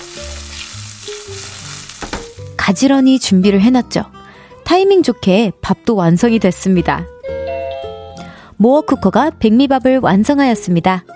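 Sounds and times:
chopped gimbap ingredients sizzling while stir-fried in a frying pan: 0.0 - 2.6
speech: 2.7 - 7.2, 8.6 - 11.1.

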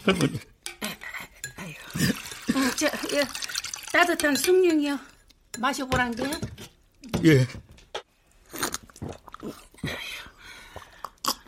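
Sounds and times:
speech: 0.0 - 0.5, 2.0 - 6.5, 7.2 - 7.6, 9.4 - 10.0
young man hungrily eating rice: 8.4 - 9.9.

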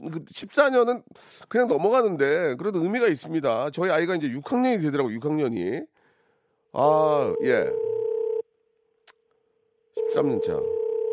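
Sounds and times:
speech: 0.0 - 5.9, 6.7 - 7.9, 10.0 - 10.7
telephone ringing tone: 7.2 - 8.4, 10.0 - 11.1.

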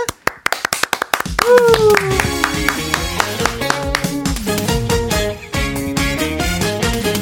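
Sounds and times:
crowd clapping in a steady rhythm: 0.0 - 4.6
music with a singing voice: 1.4 - 7.1.

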